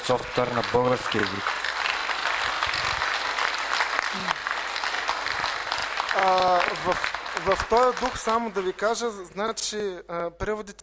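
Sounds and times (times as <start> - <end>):
audience applause: 0.0 - 9.4
speech: 0.1 - 1.7, 6.2 - 10.8.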